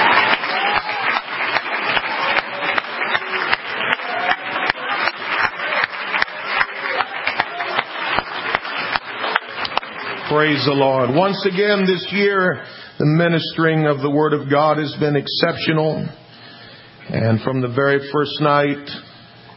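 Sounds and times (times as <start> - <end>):
church audience hand clapping: 0.0 - 11.8
speech: 10.4 - 16.2, 17.1 - 19.1.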